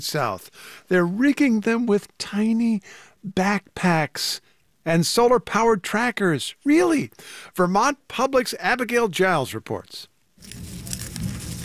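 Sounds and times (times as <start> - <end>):
speech: 0.0 - 10.8
monarch butterfly rustling its legs: 10.4 - 11.6.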